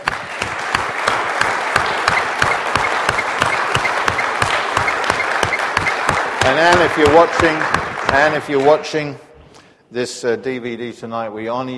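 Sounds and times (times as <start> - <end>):
audience applause: 0.0 - 9.0
speech: 6.5 - 9.3, 9.9 - 11.7.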